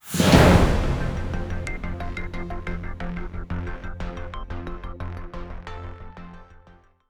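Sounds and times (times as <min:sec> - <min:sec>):
news opening sounder: 0:00.0 - 0:03.4.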